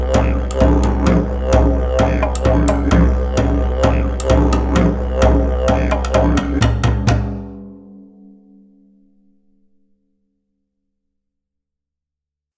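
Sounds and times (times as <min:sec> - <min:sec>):
didgeridoo instrumental: 0:00.0 - 0:07.6.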